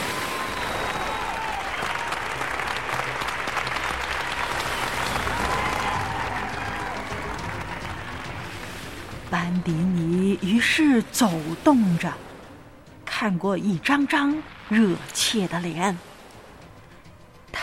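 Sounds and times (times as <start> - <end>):
crowd applause: 0.0 - 9.1
shrill whistles: 0.1 - 2.2
speech: 9.4 - 12.3, 13.2 - 16.1.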